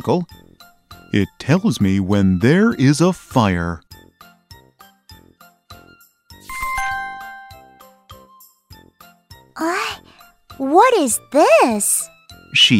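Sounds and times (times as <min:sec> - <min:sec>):
speech: 0:00.0 - 0:00.4, 0:01.1 - 0:03.8, 0:10.8 - 0:12.7
page-turn chime: 0:06.5 - 0:07.7.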